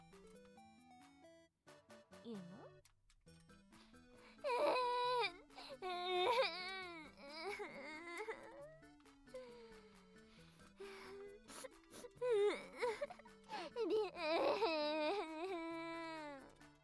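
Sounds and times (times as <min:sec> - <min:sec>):
speech: 0:02.2 - 0:02.9
person crying and sobbing: 0:04.3 - 0:16.6.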